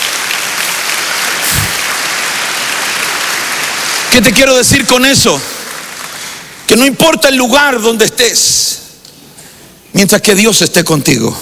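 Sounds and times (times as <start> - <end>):
audience applause: 0.0 - 6.6
speech: 4.2 - 5.6, 6.7 - 8.8, 10.0 - 11.3.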